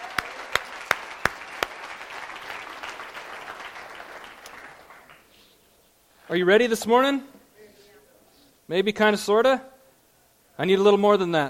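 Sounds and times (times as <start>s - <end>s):
audience at a Sunday gathering clapping: 0.0s - 5.4s
speech: 6.3s - 7.3s, 8.7s - 9.7s, 10.6s - 11.4s.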